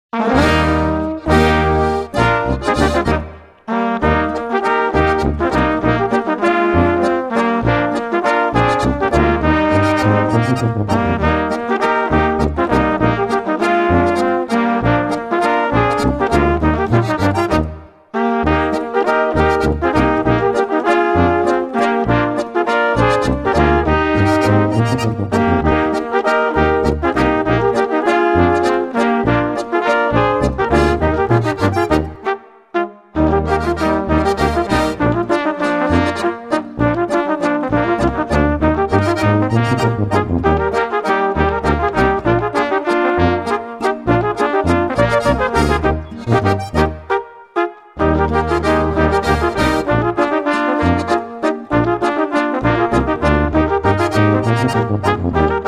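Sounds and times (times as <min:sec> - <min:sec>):
waltz music: 0:00.2 - 0:55.6.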